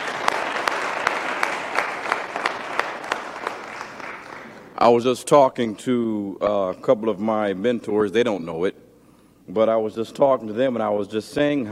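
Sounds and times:
audience applause: 0:00.0 - 0:04.8
speech: 0:04.8 - 0:08.8, 0:09.5 - 0:11.7.

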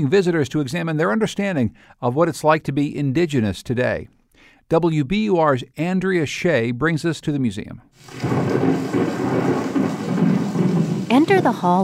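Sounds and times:
speech: 0:00.0 - 0:09.6, 0:11.1 - 0:11.8
rain falling on the Great Plains: 0:08.0 - 0:11.8
thunder rumbling on the Great Plains: 0:08.0 - 0:11.8.

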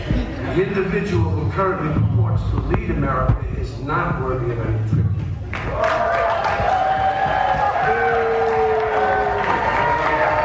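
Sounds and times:
speech: 0:00.6 - 0:05.1, 0:05.7 - 0:06.2
large crowd booing: 0:05.6 - 0:10.4.

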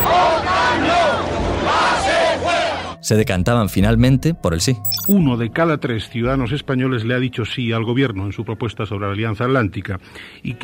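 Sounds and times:
large crowd shouting and chanting in the streets: 0:00.1 - 0:03.0
speech: 0:03.1 - 0:10.6.

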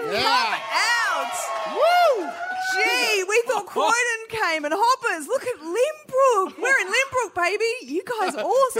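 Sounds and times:
crowd cheering and whooping: 0:00.1 - 0:03.2
speech: 0:03.7 - 0:08.7.

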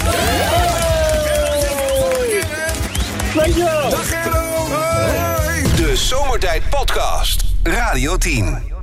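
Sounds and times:
applause: 0:00.0 - 0:04.8
speech: 0:06.1 - 0:08.7.

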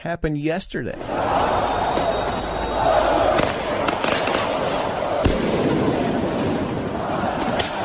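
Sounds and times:
speech: 0:00.0 - 0:03.6
huge protest crowd roaring in city streets: 0:01.0 - 0:07.8
sharp loud bangs: 0:03.3 - 0:07.8.

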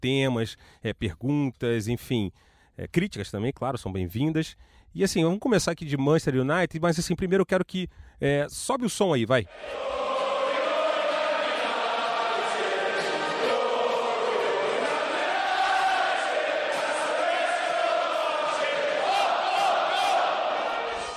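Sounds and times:
speech: 0:00.0 - 0:10.1
football fans singing a club anthem: 0:09.5 - 0:21.1.

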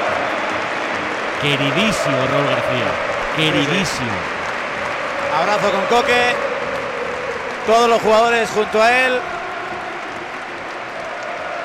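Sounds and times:
stadium crowd at the Metropolitano applauding and chanting for Raúl García: 0:00.0 - 0:11.6
speech: 0:01.4 - 0:04.4, 0:05.3 - 0:06.5, 0:07.7 - 0:09.3.

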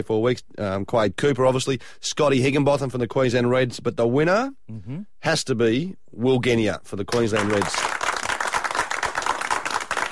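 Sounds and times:
speech: 0:00.0 - 0:08.0
small group of studio people clapping: 0:07.1 - 0:10.1.

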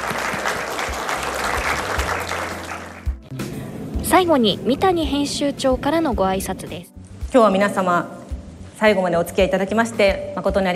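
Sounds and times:
sustained audience applause: 0:00.0 - 0:03.2
speech: 0:04.1 - 0:08.2, 0:08.8 - 0:10.7.

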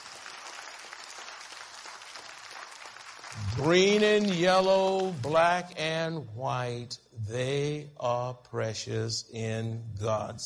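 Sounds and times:
audience clapping hands: 0:00.0 - 0:05.9
speech: 0:03.6 - 0:10.4.

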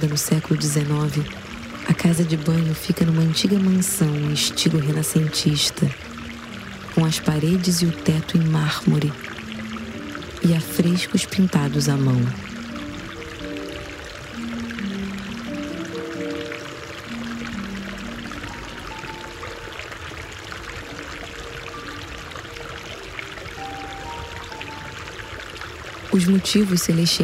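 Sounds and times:
speech: 0:00.0 - 0:06.1, 0:07.0 - 0:09.3, 0:10.4 - 0:12.5, 0:26.2 - 0:27.2
flowing water in a bathhouse: 0:00.0 - 0:27.2.

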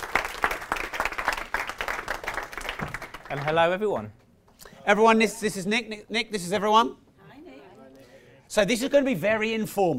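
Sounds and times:
audience applause: 0:00.0 - 0:03.8
speech: 0:03.3 - 0:04.2, 0:04.8 - 0:07.0, 0:08.5 - 0:09.9.

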